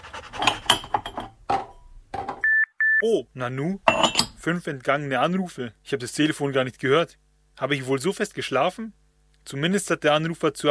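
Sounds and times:
cups and dishes clinking while making coffee: 0.4 - 2.4, 3.8 - 4.4
speech: 3.0 - 10.6.

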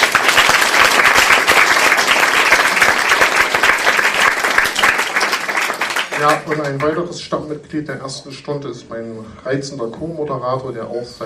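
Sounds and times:
audience applauding: 0.0 - 7.0
speech: 6.2 - 11.2.

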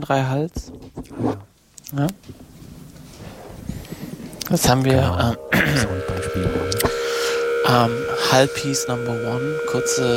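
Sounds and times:
speech: 0.0 - 2.4, 4.5 - 6.7, 7.7 - 10.1
Dapper spring reverb feedback drone on a modular synthesizer: 4.2 - 10.1.

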